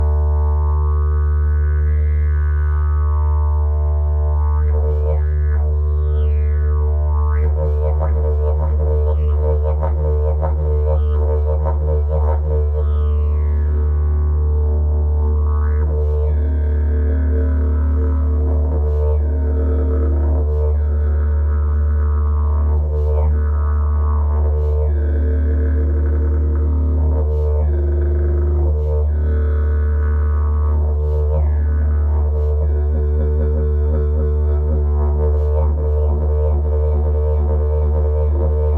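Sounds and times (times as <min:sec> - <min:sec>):
didgeridoo: 0:00.0 - 0:38.7.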